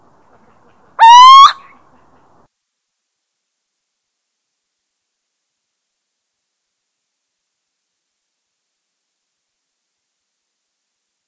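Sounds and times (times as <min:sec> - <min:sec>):
little owl territorial hooting: 0:01.0 - 0:01.8.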